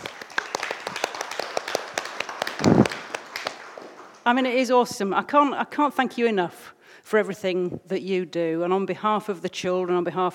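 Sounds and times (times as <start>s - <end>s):
round of applause from a small group: 0.0s - 4.2s
speech: 4.2s - 10.3s.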